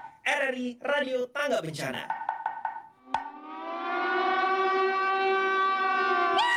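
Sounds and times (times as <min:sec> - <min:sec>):
speech: 0:00.3 - 0:02.2
tsunami warning alarm siren: 0:03.0 - 0:06.5.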